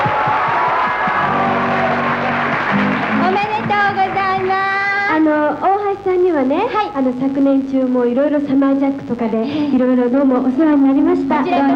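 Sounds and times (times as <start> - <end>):
warm applause: 0.0 - 5.3
speech: 6.4 - 11.7.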